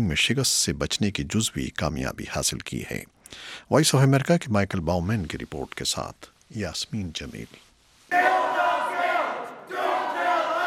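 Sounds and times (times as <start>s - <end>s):
speech: 0.0s - 8.3s
protesters chanting slogans during US health care vote: 8.1s - 10.6s.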